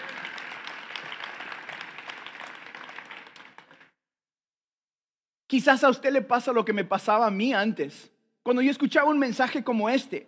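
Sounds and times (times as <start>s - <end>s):
audience clapping: 0.0s - 4.0s
speech: 5.5s - 10.2s.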